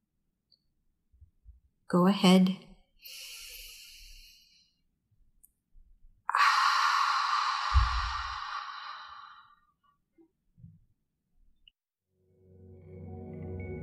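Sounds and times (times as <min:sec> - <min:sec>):
speech: 0:01.9 - 0:03.2
soft inhale through the nose during guided meditation: 0:03.0 - 0:04.6, 0:06.3 - 0:09.6
breathy exhale through the mouth: 0:06.3 - 0:09.6.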